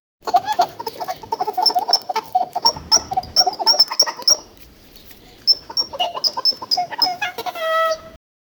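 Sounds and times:
hooves clip clopping: 0.3s - 7.2s.

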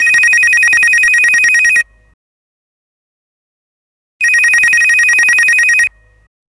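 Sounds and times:
cellphone ringtone: 0.0s - 1.9s, 4.2s - 6.2s.

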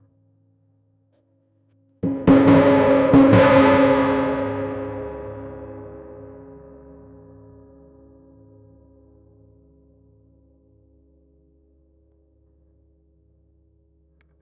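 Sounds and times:
drums: 2.0s - 6.6s.

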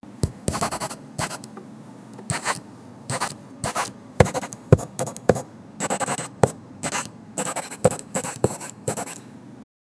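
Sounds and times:
pencil on notebook: 0.5s - 1.4s, 2.3s - 9.2s.

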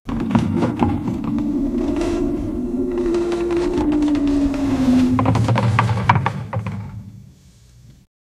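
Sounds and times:
rope sound: 0.8s - 6.4s.

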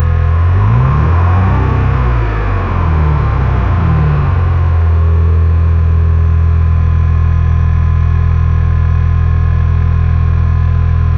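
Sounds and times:
V6 car engine: 0.0s - 11.0s.

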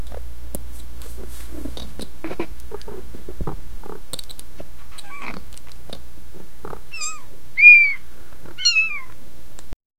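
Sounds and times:
two small kittens playing: 1.1s - 6.0s, 6.6s - 9.2s.

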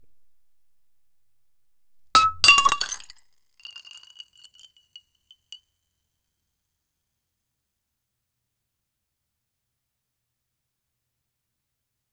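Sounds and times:
cold prosecco pouring: 2.2s - 4.7s.

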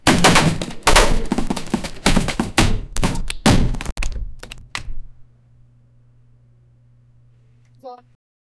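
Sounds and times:
violent crashing: 0.0s - 3.9s
violent thudding: 0.0s - 5.0s.

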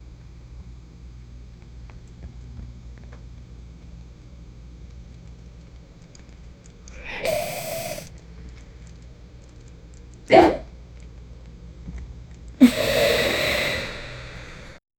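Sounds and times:
belly inflating: 7.0s - 8.1s, 12.6s - 14.8s.

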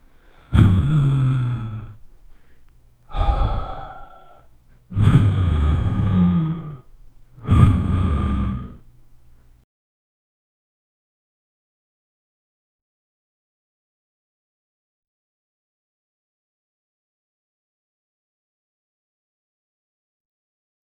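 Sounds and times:
short vocal exertion: 0.2s - 2.5s, 3.1s - 8.8s.

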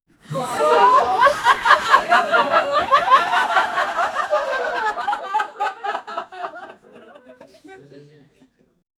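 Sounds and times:
group of friends laughing hysterically: 0.2s - 8.5s.

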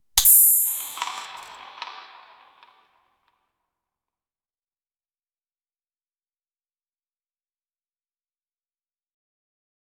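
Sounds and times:
beer can: 0.2s - 2.4s.

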